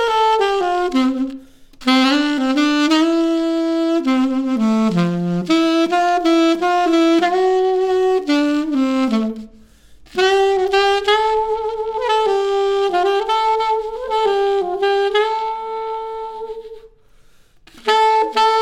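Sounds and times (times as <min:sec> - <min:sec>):
solo saxophone: 0:00.0 - 0:18.5.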